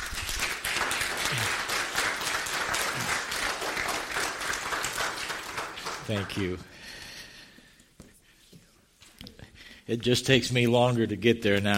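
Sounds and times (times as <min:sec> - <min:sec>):
audience applause welcoming a pastor to speak: 0:00.0 - 0:06.7
speech: 0:06.1 - 0:06.8, 0:09.9 - 0:11.7.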